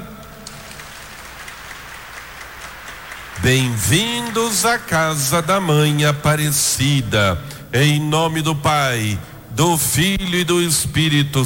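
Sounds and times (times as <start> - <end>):
audience applause: 0.0 - 6.0
speech: 3.4 - 11.4.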